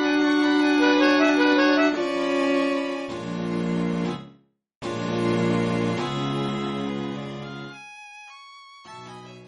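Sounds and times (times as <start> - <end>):
alto saxophone: 0.0 - 3.1
strings: 0.0 - 7.9.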